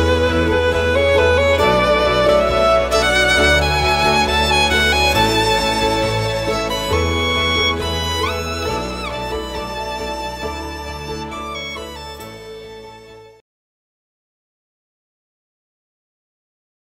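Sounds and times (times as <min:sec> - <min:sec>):
wedding violin: 0:00.0 - 0:13.4.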